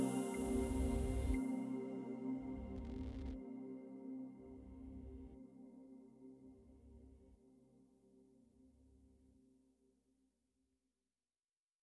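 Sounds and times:
downtempo music: 0.0 - 5.8.

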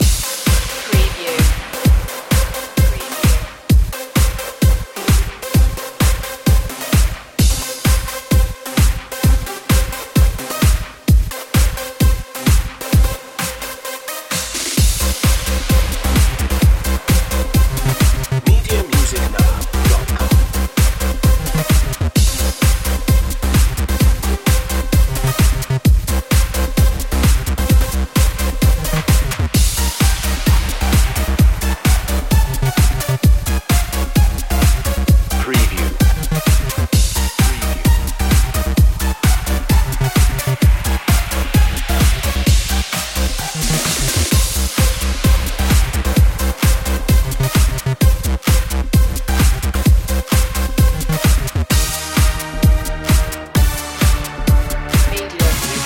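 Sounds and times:
party rave dance music: 0.0 - 55.8.

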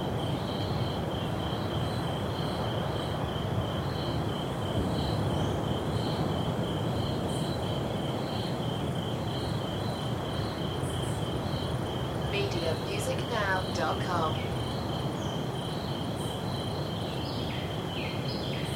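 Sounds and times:
rainforest ambience: 0.0 - 18.7
ocean waves: 11.8 - 14.7.

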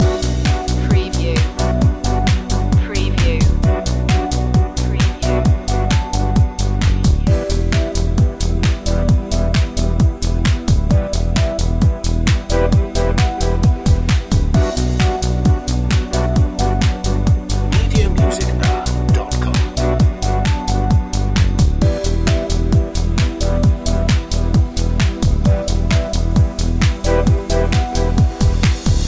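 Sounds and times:
digital music loop: 0.0 - 29.0.

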